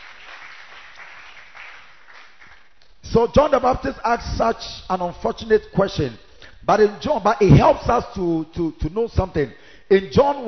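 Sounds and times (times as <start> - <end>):
church congregation clapping during a sermon: 0.0 - 3.7
speech: 3.1 - 10.4.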